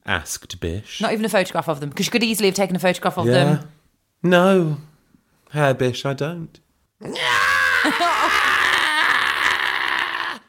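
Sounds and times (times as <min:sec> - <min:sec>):
speech: 0:00.1 - 0:04.9, 0:05.5 - 0:08.5
man's angry scream voiced by the narrator: 0:07.0 - 0:10.4.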